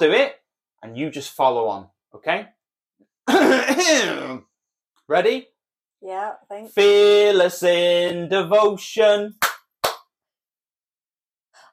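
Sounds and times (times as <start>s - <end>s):
speech: 0.0s - 2.6s, 3.3s - 4.5s, 5.1s - 9.5s
single sharp hand clap: 9.4s - 10.2s.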